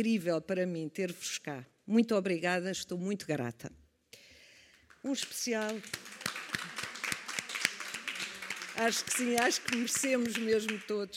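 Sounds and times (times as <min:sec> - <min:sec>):
speech: 0:00.0 - 0:03.8, 0:05.0 - 0:06.2, 0:08.8 - 0:11.1
sparse audience applause at a speech event: 0:04.8 - 0:11.1.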